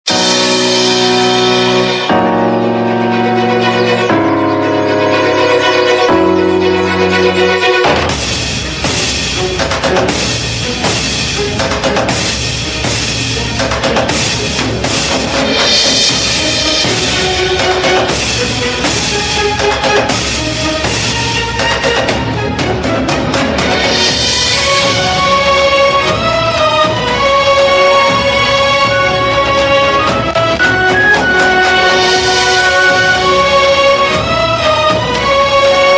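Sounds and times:
dramatic tune: 0.1s - 35.9s.

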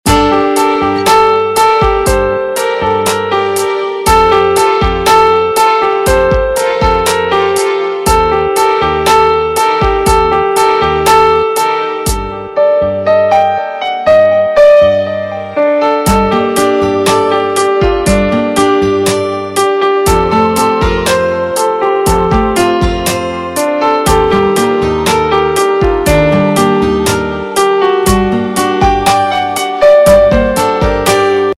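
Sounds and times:
instrumental ringtone: 0.1s - 31.5s.

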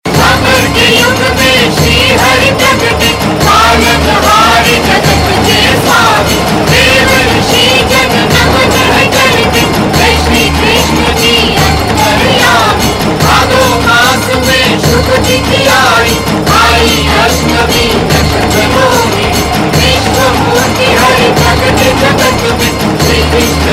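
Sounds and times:
devotional aarti song: 0.1s - 23.7s.

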